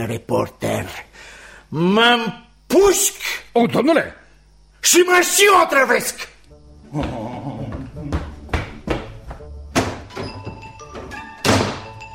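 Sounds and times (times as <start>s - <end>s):
speech: 0.0s - 4.2s, 4.8s - 6.3s, 6.9s - 7.3s
door slammed forcefully: 9.7s - 12.0s.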